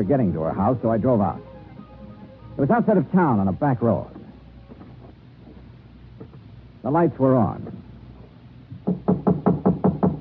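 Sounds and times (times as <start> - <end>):
speech: 0.0 - 1.5, 2.6 - 4.2, 6.8 - 7.8, 8.9 - 9.5
knocking on a door: 8.7 - 10.1.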